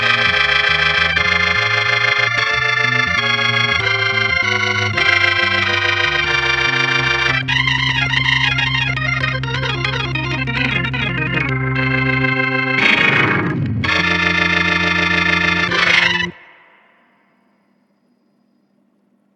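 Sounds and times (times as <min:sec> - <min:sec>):
tonewheel organ playing blues: 0:00.0 - 0:17.2.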